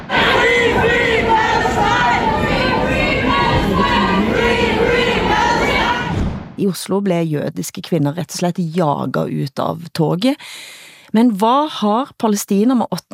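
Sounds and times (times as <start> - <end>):
crowd chanting Free Palestine: 0.0 - 6.3
speech: 6.6 - 13.1.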